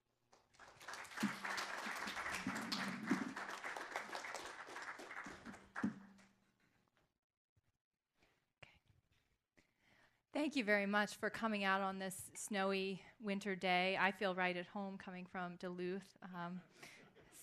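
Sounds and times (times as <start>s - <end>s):
audience applause welcoming a speaker at a history lecture: 0.4s - 6.2s
speech: 10.4s - 17.0s.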